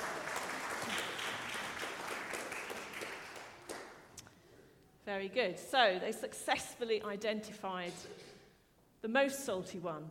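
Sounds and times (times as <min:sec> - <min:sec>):
audience applause: 0:00.0 - 0:04.1
speech: 0:05.1 - 0:08.3, 0:09.0 - 0:10.1.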